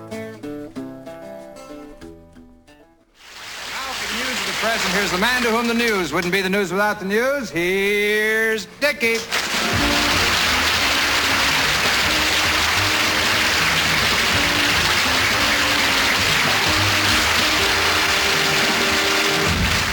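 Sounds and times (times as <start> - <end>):
crowd clapping: 3.2 - 6.4, 9.3 - 19.9
speech: 4.6 - 9.9.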